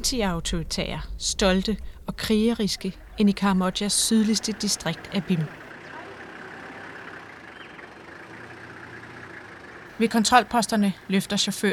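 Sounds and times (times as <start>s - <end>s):
speech: 0.0s - 5.6s, 10.0s - 11.7s
car engine roaring under heavy throttle: 2.9s - 11.3s.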